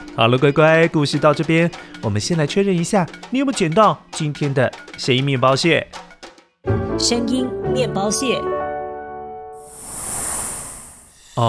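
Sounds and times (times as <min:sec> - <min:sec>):
speech: 0:00.2 - 0:06.1, 0:06.7 - 0:08.6
sound made by a hundred-pace viper: 0:09.6 - 0:11.4.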